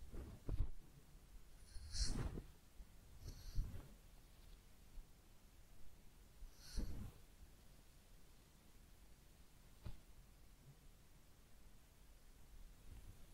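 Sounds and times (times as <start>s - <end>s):
head massage and ear cleaning rubbing and scratching: 0.0s - 5.0s, 6.6s - 7.3s
low quiet hiss: 0.0s - 13.3s.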